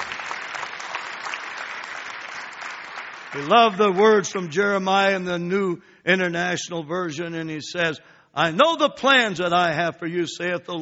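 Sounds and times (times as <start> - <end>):
audience clapping hands: 0.0 - 5.2
speech: 3.3 - 10.7.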